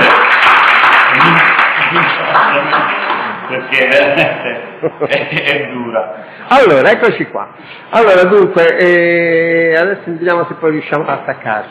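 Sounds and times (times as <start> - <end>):
audience clapping at a presentation on an urban green line project: 0.0 - 3.6
laughter: 1.1 - 5.8
speech: 3.7 - 11.7.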